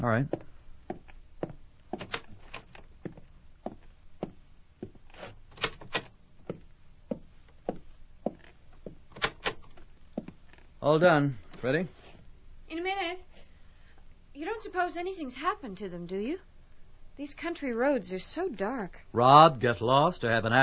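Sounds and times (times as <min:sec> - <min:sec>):
speech: 0:00.0 - 0:01.0, 0:10.8 - 0:12.0, 0:14.6 - 0:16.5, 0:17.2 - 0:20.6
faint low hum: 0:00.0 - 0:20.6
bedroom doors being opened: 0:05.2 - 0:06.1.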